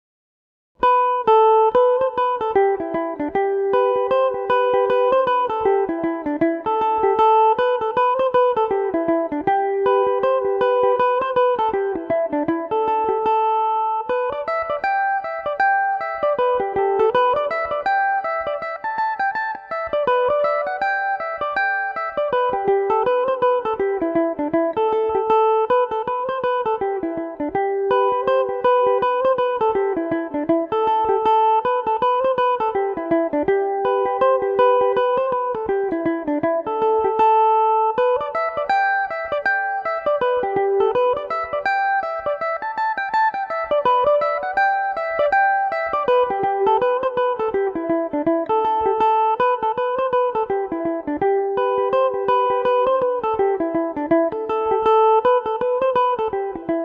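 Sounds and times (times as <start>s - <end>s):
Irish mandolin playing a reel in A dorian: 0.8s - 56.8s.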